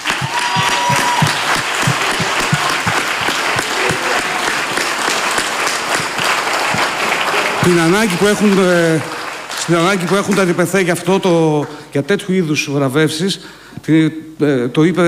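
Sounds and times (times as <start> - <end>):
audience applause: 0.0 - 11.1
speech: 7.6 - 15.0.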